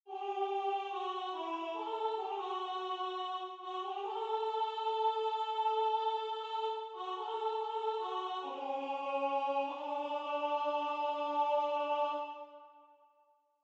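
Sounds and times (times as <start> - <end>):
barbershop tenor singing: 0.1 - 12.7.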